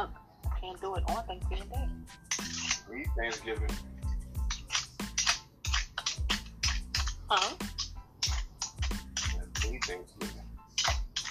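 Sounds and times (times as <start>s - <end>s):
speech: 0.0s - 4.0s, 7.3s - 7.8s, 9.8s - 10.4s
peeling yams for a Thanksgiving meal: 2.1s - 11.3s.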